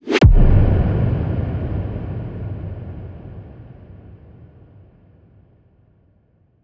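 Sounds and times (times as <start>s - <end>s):
bass: 0.2s - 2.8s.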